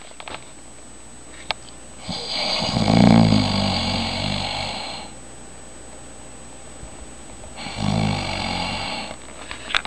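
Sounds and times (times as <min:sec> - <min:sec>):
person snoring: 0:02.0 - 0:05.2, 0:07.5 - 0:09.2.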